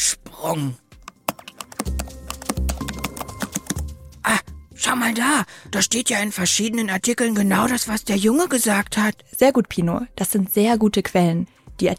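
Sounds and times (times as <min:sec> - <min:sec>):
speech: 0:00.4 - 0:00.8, 0:04.8 - 0:11.9
computer keyboard pecked with a beak: 0:01.1 - 0:03.8.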